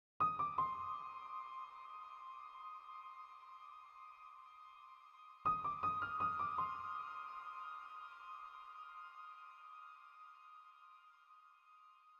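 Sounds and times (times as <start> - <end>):
interactive music: 0.2 - 12.1.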